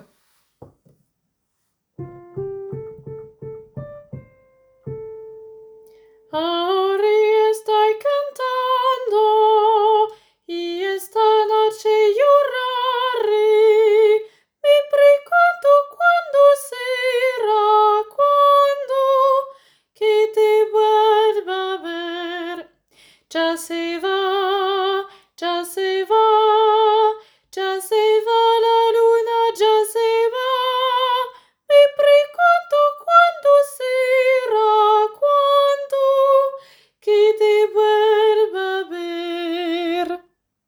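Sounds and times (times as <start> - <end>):
soprano singing: 2.0 - 22.6, 23.3 - 40.2.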